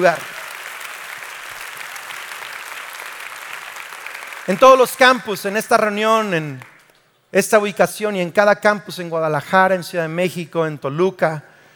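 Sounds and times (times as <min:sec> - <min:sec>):
speech: 0:00.0 - 0:00.3, 0:04.5 - 0:06.7, 0:07.3 - 0:11.5
audience applause: 0:00.0 - 0:04.9.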